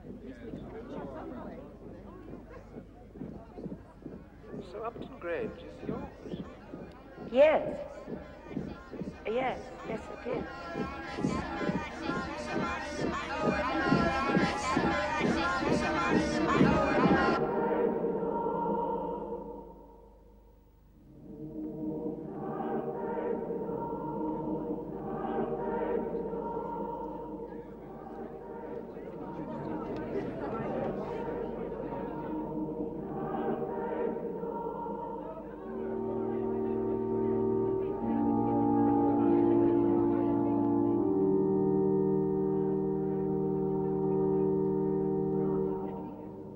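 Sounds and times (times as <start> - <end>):
marching footsteps: 0.0 - 15.4
people gossiping: 0.0 - 17.4, 25.3 - 41.2, 43.8 - 46.5
people chanting: 0.0 - 20.1, 21.2 - 46.5.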